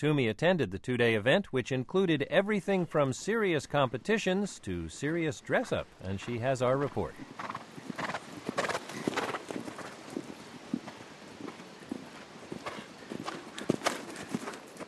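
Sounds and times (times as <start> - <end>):
speech: 0.0 - 7.6
rustle: 5.7 - 14.8
several horses cantering, hooves clip-clopping: 6.0 - 14.8.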